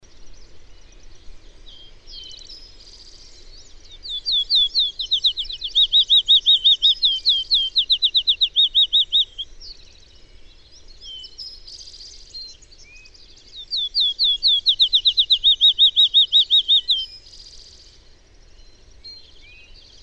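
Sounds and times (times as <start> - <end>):
bird singing fast slurred whistles: 4.0 - 9.5, 13.6 - 17.2.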